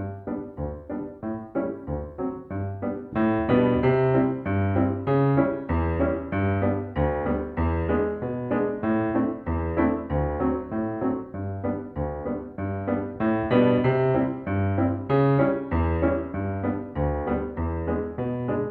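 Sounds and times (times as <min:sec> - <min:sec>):
piano accompaniment: 0:00.0 - 0:18.6.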